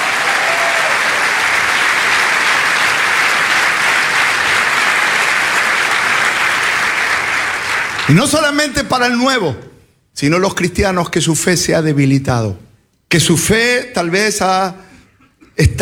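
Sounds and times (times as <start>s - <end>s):
audience applause: 0.0s - 8.4s
speech: 8.1s - 14.9s, 15.6s - 15.8s.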